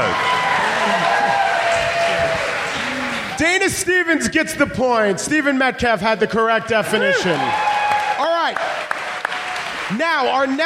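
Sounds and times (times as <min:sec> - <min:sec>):
audience clapping at a live comedy quiz event: 0:00.0 - 0:03.7, 0:07.2 - 0:10.6
speech: 0:03.4 - 0:07.7, 0:09.9 - 0:10.6.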